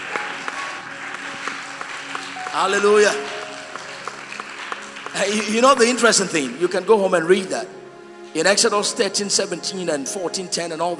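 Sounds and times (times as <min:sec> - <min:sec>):
audience clapping: 0:00.0 - 0:06.9
speech: 0:02.6 - 0:03.3, 0:05.2 - 0:07.8, 0:08.4 - 0:10.9.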